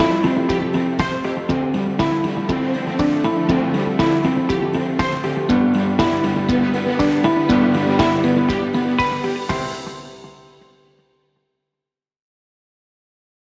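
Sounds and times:
happy corporate background music: 0.0s - 10.6s.

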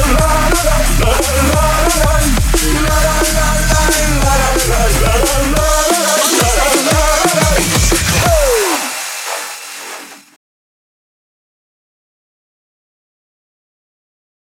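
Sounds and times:
drum and bass music: 0.0s - 10.4s.

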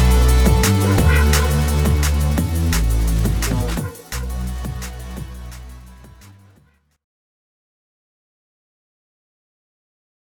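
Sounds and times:
drum and bass music: 0.0s - 6.7s.

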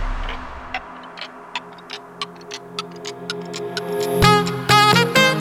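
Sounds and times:
saxophone: 4.1s - 5.3s.

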